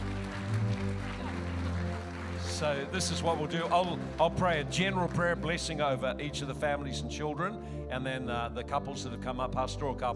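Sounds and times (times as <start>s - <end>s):
audience clapping: 0.0s - 5.8s
speech: 2.6s - 10.1s.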